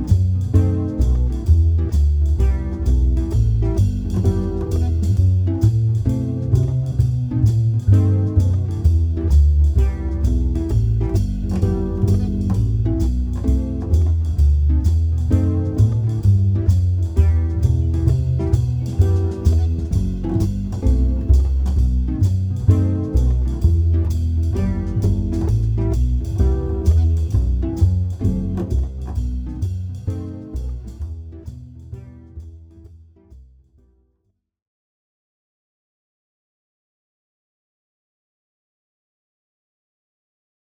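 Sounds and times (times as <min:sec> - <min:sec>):
minor key music loop: 0:00.0 - 0:32.4.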